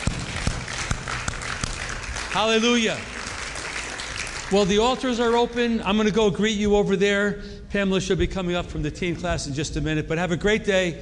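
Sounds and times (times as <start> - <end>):
audience hand clapping: 0.0 - 5.6
speech: 2.3 - 3.2, 4.5 - 11.0.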